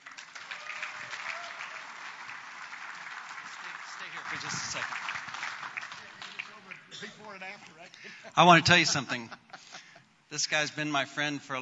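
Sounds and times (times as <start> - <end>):
audience applauding to welcome a guest speaker: 0.0 - 7.4
laughter: 4.0 - 5.1, 5.9 - 10.0
speech: 4.3 - 5.1, 7.0 - 9.4, 10.3 - 11.6.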